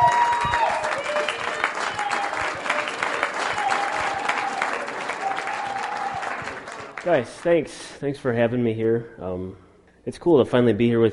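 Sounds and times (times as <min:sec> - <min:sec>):
audience applause: 0:00.0 - 0:07.6
speech: 0:07.0 - 0:11.1.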